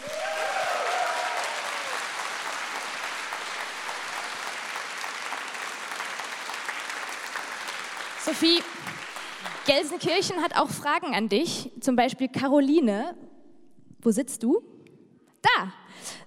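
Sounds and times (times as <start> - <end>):
audience applause: 0.0 - 10.5
speech: 8.2 - 8.8, 9.7 - 13.2, 14.0 - 14.7, 15.6 - 16.2.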